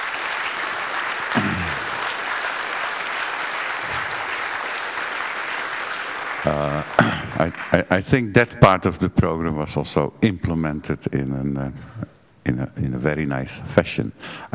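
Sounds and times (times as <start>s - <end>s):
audience applause for sponsors at an internet infrastructure conference: 0.0s - 8.2s
speech: 6.4s - 14.5s.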